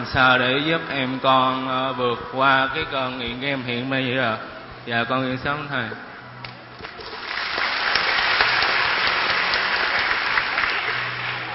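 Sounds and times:
speech: 0.0s - 6.1s
audience applause: 6.8s - 11.5s.

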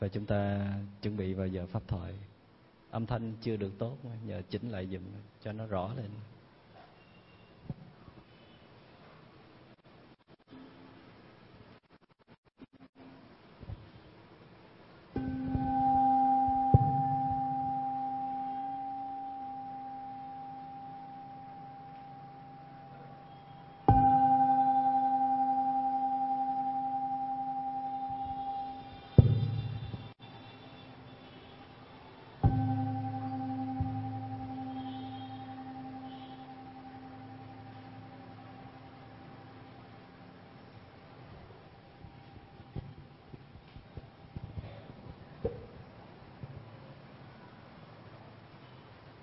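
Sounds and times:
speech: 0.0s - 6.3s
meditation bell strokes: 15.2s - 31.8s, 32.4s - 40.8s.

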